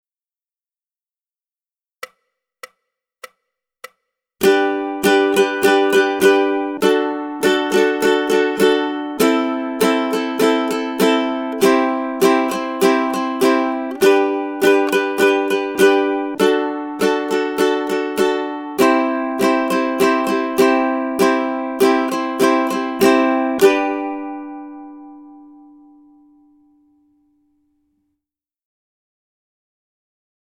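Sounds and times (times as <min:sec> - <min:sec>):
ukulele rhythm study: 0:02.0 - 0:27.6.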